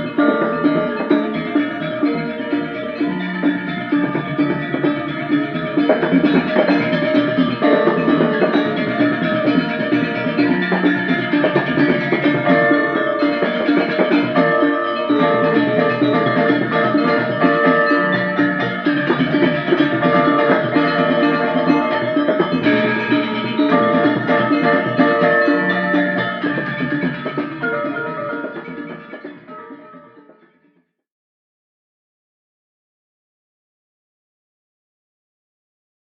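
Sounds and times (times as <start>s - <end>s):
Balinese gamelan gong kebyar ensemble playing: 0.0s - 30.4s.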